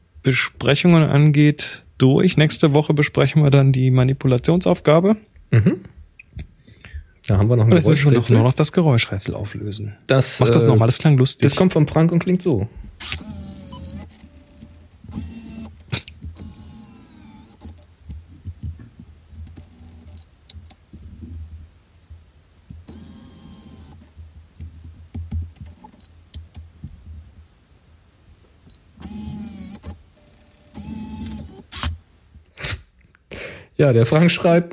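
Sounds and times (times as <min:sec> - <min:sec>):
speech: 0:00.2 - 0:06.0, 0:07.3 - 0:13.4, 0:33.8 - 0:34.7
2002 Fujifilm FinePix F601 Zoom camera clicks: 0:13.0 - 0:14.3, 0:30.8 - 0:32.0
2002 Fujifilm FinePix F601 Zoom camera zoom and focus motor whirring: 0:13.0 - 0:15.8, 0:16.4 - 0:17.8, 0:22.9 - 0:24.0, 0:29.0 - 0:32.0.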